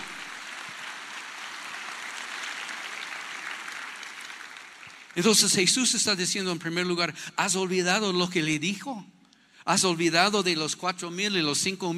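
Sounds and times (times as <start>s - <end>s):
audience applause: 0.0s - 5.6s
speech: 5.2s - 11.9s.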